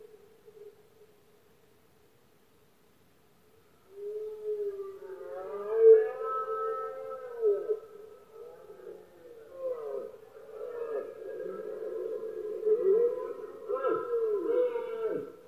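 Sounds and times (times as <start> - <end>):
red deer roaring: 4.7 - 15.4.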